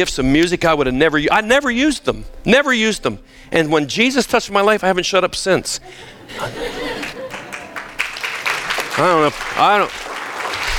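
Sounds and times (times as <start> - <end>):
speech: 0.0 - 6.8, 9.0 - 10.1
laughter: 5.8 - 7.8
audience applause: 6.8 - 10.7.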